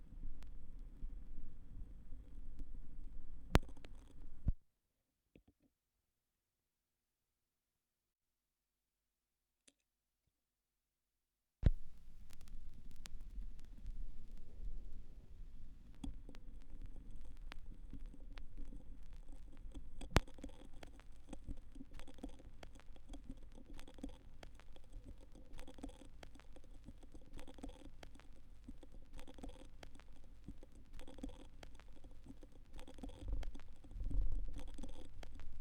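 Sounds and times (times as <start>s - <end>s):
vinyl record noise: 0.0s - 4.6s, 11.6s - 35.5s.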